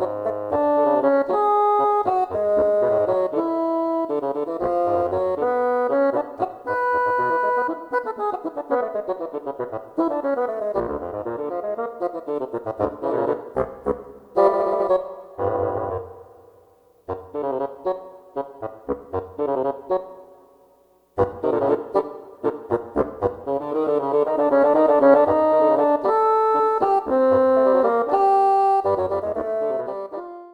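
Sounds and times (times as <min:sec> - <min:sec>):
bassoon playing tango: 0:00.0 - 0:20.3, 0:21.2 - 0:30.5.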